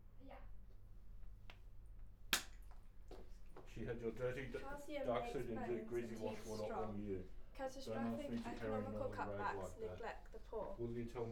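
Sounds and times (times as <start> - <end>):
hand clap: 2.3 - 2.6
speech: 3.8 - 11.2.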